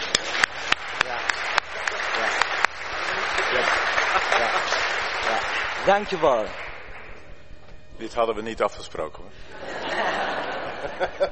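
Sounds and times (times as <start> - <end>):
audience applause: 0.0 - 7.1
laughter: 1.8 - 5.5, 9.5 - 11.2
speech: 5.9 - 6.6, 8.0 - 10.1, 10.8 - 11.2.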